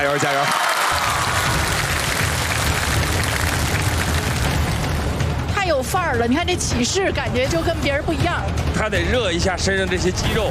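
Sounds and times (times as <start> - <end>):
speech: 0.0 - 1.3, 5.7 - 10.4
applause: 0.0 - 5.2.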